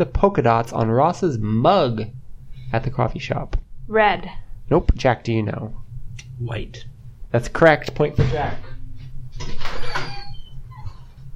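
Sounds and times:
speech: 0.0 - 8.7
low hum: 0.0 - 11.3
door opening to let dog in: 8.0 - 11.1.

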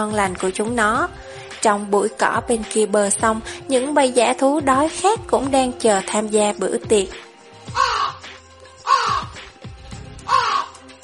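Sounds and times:
speech: 0.0 - 7.8
black crow cawing: 7.7 - 8.2, 8.8 - 9.4, 10.2 - 10.9.

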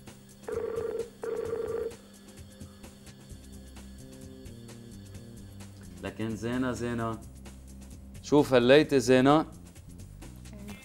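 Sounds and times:
telephone call ringing: 0.5 - 2.0
speech: 6.0 - 7.3, 8.3 - 9.6.

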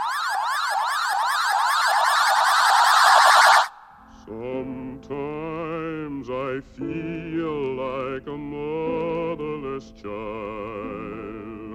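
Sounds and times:
many smoke detector alarms: 0.0 - 3.8
person singing: 4.0 - 11.7.

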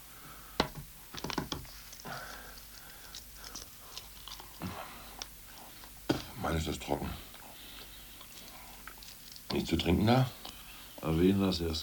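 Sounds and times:
chewing a hard-boiled egg: 1.9 - 6.0, 7.2 - 9.6
speech: 6.6 - 7.3, 9.6 - 10.4, 11.0 - 11.8.

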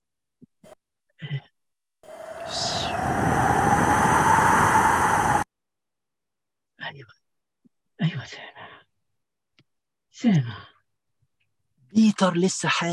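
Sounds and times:
strong wind blowing: 2.1 - 5.5
speech: 12.2 - 12.9.

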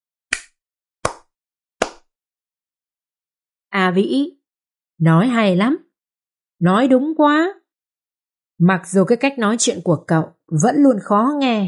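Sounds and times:
hand clapping in approval: 0.3 - 2.1
speech: 3.8 - 4.4, 5.0 - 5.8, 6.6 - 7.6, 8.6 - 11.6.

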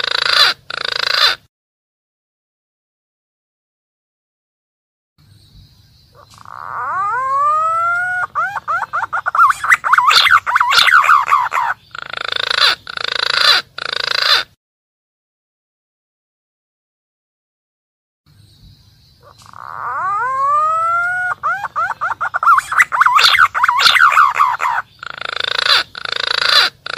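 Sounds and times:
green pigeon calling: 0.0 - 1.5, 6.1 - 14.6, 19.1 - 26.9.

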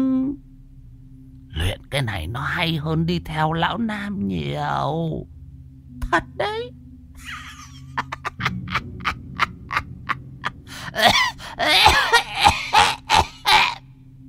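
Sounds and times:
speech: 2.0 - 5.4, 6.1 - 7.4
old woman laughing: 7.2 - 13.8
old woman coughing phlegm: 10.9 - 13.8.

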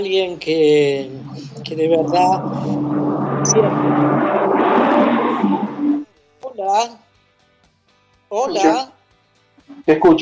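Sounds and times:
speech: 0.0 - 3.0, 3.6 - 4.4, 6.7 - 7.0, 8.3 - 9.0, 9.7 - 10.2
truck passing by outside: 0.8 - 6.1.

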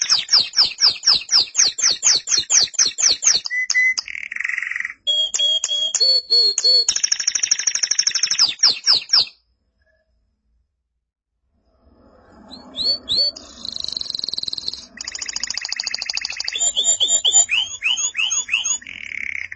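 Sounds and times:
canary singing: 0.0 - 9.4, 12.4 - 19.5.

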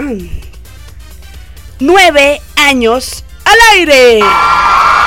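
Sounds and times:
speech: 0.1 - 0.4, 1.8 - 4.9
female announcer giving a loud shout: 3.5 - 4.4.

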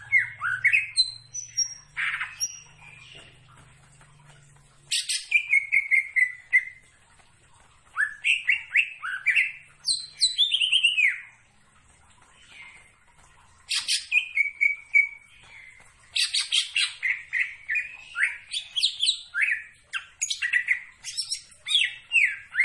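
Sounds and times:
leafbird singing vigorously: 0.0 - 7.0, 7.9 - 11.4, 13.7 - 22.6.

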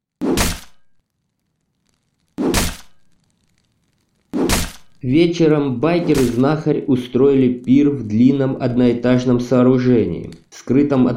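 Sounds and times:
blade chopping carcass of sheep: 0.2 - 0.9, 2.4 - 3.1, 4.3 - 5.0, 6.0 - 6.5
speech: 5.0 - 11.1.

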